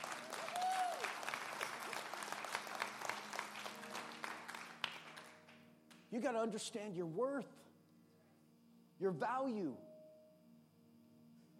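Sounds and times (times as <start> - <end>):
audience clapping: 0.0 - 6.1
speech: 6.1 - 7.7, 9.0 - 9.9.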